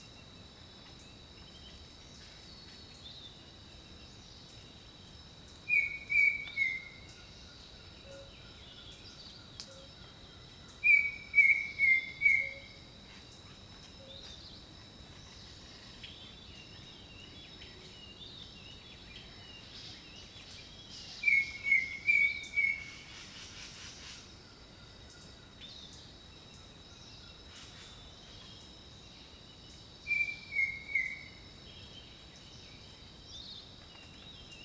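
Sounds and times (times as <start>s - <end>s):
insects humming: 0.0s - 34.6s
bird whistling: 5.7s - 6.9s, 30.1s - 31.2s.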